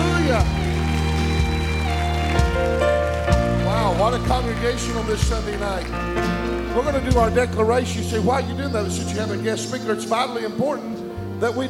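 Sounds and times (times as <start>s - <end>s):
crowd clapping hands in praise: 0.0s - 8.5s
sustained low organ-like tones: 0.0s - 11.6s
speech: 4.2s - 11.6s.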